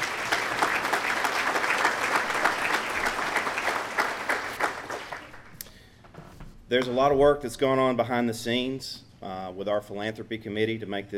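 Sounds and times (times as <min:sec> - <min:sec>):
round of applause from audience: 0:00.0 - 0:05.6
speech: 0:06.7 - 0:11.1.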